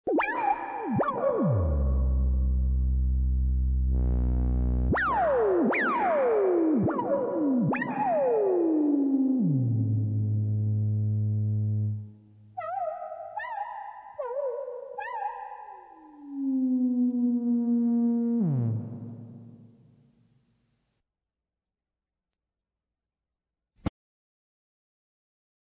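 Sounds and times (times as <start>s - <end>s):
synth: 0.1s - 19.9s.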